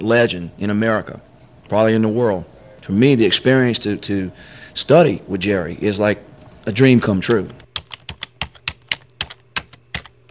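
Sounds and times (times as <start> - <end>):
speech: 0.0 - 7.6
fingers typing on a computer keyboard: 7.3 - 10.2.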